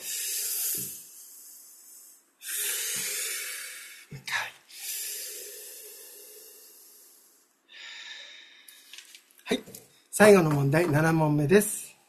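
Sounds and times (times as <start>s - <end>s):
deep breathing during a stretching break: 0.0s - 8.9s
speech: 0.8s - 1.0s, 9.5s - 11.8s.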